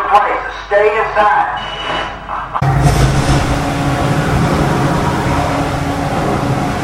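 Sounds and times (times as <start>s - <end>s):
speech: 0.2s - 2.1s
tornado roaring near a storm shelter: 2.3s - 6.8s.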